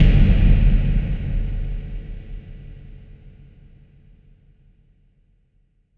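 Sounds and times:
impact hits: 0:00.0 - 0:03.3.

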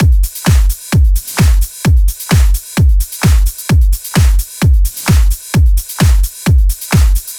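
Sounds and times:
drums: 0:00.0 - 0:07.3.

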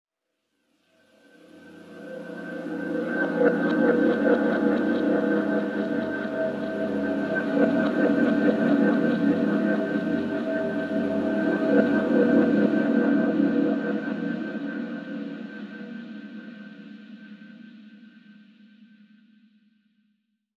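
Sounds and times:
synth pad: 0:01.1 - 0:16.5.

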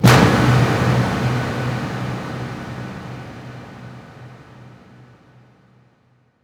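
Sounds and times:
explosions: 0:00.0 - 0:05.1
impact hits: 0:00.0 - 0:05.1.

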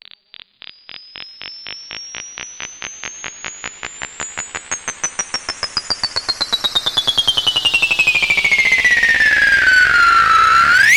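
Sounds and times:
long sweeps: 0:07.8 - 0:10.9.

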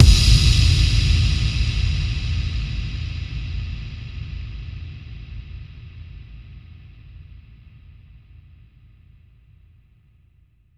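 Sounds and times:
bass drum FX kicks: 0:00.0 - 0:04.6.

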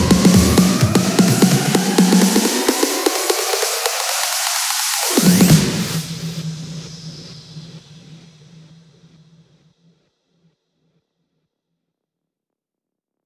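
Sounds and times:
electro house fills: 0:00.0 - 0:06.6.

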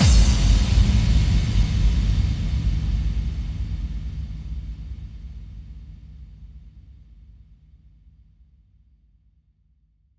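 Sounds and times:
bass drum kick with reverb: 0:00.0 - 0:06.0.

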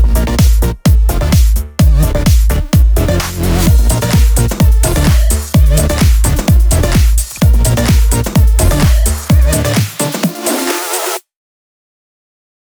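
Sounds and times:
128 BPM dubwise music mix: 0:00.0 - 0:11.2.

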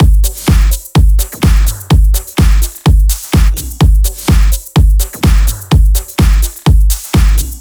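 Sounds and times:
Thai drum kit beat: 0:00.0 - 0:07.5.

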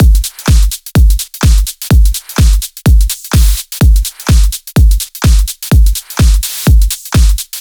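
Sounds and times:
126 BPM drum kit: 0:00.0 - 0:07.5.

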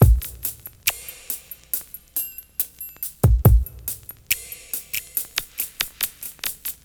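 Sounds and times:
slow motion beat loop: 0:00.0 - 0:00.9.

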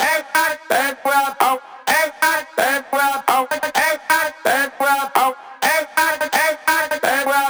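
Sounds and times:
house music loop at 128 BPM: 0:00.0 - 0:07.4.

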